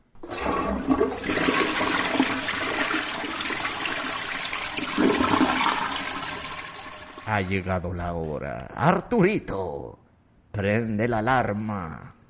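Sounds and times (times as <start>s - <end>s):
toilet flushing: 0.2s - 7.4s
speech: 0.8s - 1.6s, 7.3s - 10.0s, 10.6s - 12.2s.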